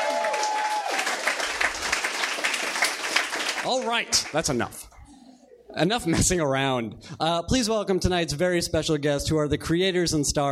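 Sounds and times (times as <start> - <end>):
round of applause: 0.0 - 4.6
speech: 3.6 - 4.8, 5.8 - 10.4.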